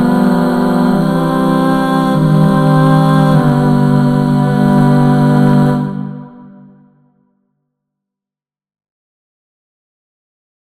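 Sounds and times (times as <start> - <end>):
male choir singing tutti in four parts: 0.0 - 6.8.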